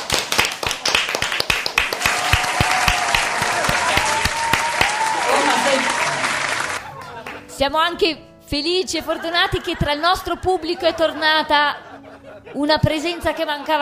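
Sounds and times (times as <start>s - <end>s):
audience applause: 0.0s - 7.4s
faint voices and cheers: 2.0s - 7.1s
laughter: 5.0s - 7.6s, 9.0s - 13.8s
speech: 7.6s - 11.8s, 12.5s - 13.8s.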